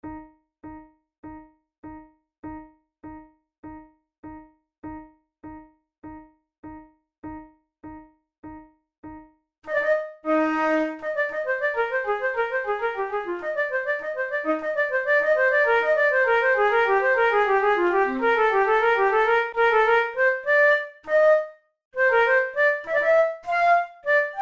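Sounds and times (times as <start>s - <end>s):
flute in E flat major: 9.7s - 24.4s.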